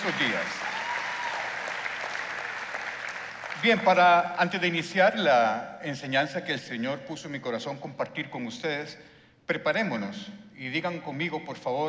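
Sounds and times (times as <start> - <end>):
speech: 0.0 - 0.8, 3.6 - 11.8
crowd applauding: 0.0 - 4.1.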